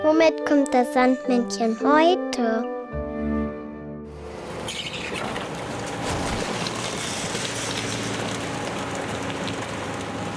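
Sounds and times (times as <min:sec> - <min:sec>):
speech: 0:00.2 - 0:02.7
garbage truck: 0:04.2 - 0:10.3.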